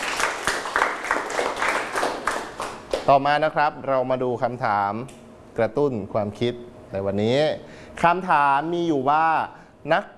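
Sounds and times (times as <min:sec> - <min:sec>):
students in a classroom clapping for themselves: 0:00.0 - 0:03.1
speech: 0:03.1 - 0:10.1.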